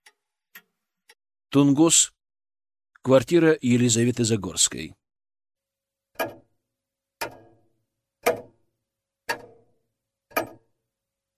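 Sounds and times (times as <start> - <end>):
pendulum floor clock ticking in a spacious quiet apartment room: 0.0 - 1.2, 6.1 - 11.3
speech: 1.5 - 2.2, 3.0 - 5.0.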